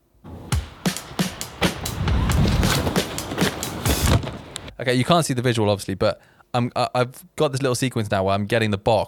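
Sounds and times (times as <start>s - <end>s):
drums in a music track: 0.3s - 4.7s
speech: 4.8s - 9.0s.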